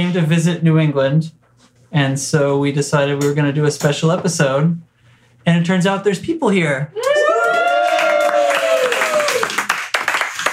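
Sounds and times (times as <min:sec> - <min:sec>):
speech: 0:00.0 - 0:07.1
people applauding: 0:07.0 - 0:10.5.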